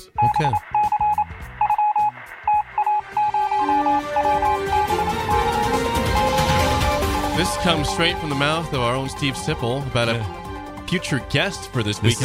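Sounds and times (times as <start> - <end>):
speech: 0.0 - 0.8, 7.4 - 12.2
breaking news sound effect: 0.2 - 12.2.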